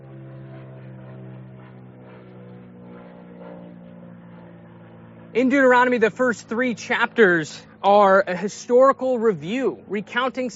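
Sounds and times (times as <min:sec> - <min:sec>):
airplane flying overhead: 0:00.0 - 0:10.5
speech: 0:05.3 - 0:10.5.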